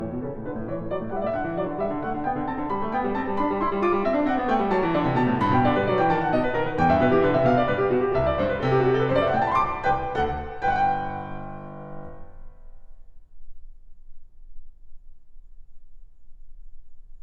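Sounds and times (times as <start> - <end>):
baroque keyboard piece in G major: 0.0 - 12.5.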